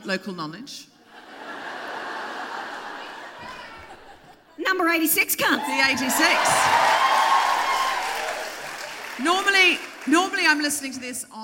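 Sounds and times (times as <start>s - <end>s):
speech: 0.0s - 0.9s, 4.6s - 7.1s, 9.2s - 11.4s
laughter: 1.1s - 4.6s
crowd applauding: 5.6s - 11.0s.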